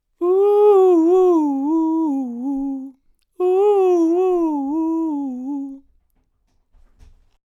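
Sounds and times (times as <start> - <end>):
vocal uuhs: 0.2 - 5.8.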